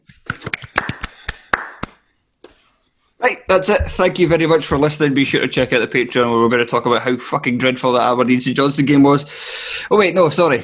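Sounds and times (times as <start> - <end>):
scattered hand clapping from a few people: 0.0 - 2.0
speech: 3.2 - 10.6.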